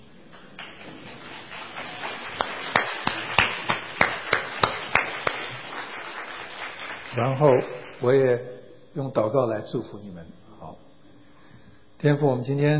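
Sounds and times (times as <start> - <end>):
audience applause: 0.4 - 8.1
speech: 7.2 - 10.4, 12.0 - 12.7.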